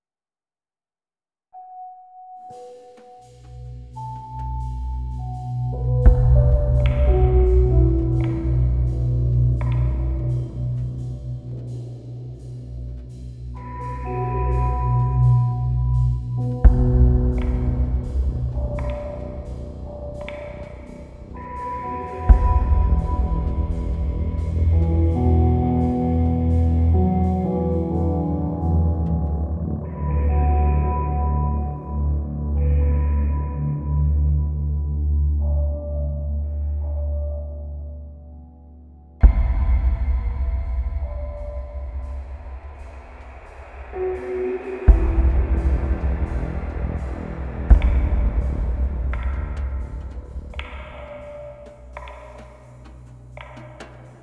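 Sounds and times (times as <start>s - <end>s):
keys: 1.6s - 54.2s
drums: 3.2s - 29.2s, 39.2s - 54.2s.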